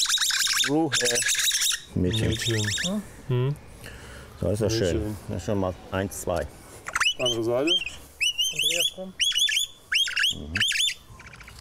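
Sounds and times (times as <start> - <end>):
baby birds squawking: 0.0 - 3.0, 6.9 - 11.5
faint chirping: 0.0 - 3.0, 6.9 - 11.5
speech: 0.6 - 3.7, 4.4 - 6.6, 7.2 - 9.2, 10.3 - 10.7.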